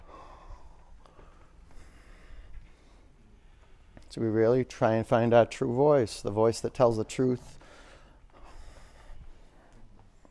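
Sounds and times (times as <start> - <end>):
ujjayi breathing during yoga practice: 0.0 - 4.1, 7.5 - 10.2
speech: 4.1 - 7.6.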